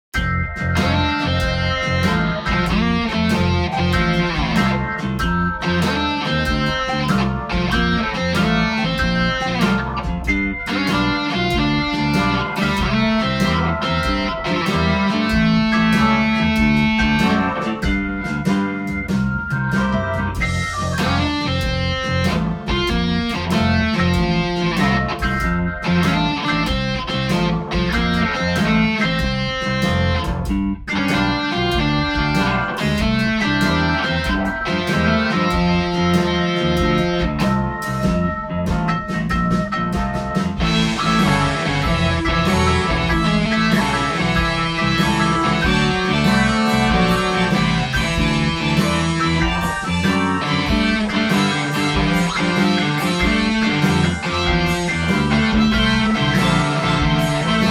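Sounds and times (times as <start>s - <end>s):
blues music: 0.0s - 57.7s.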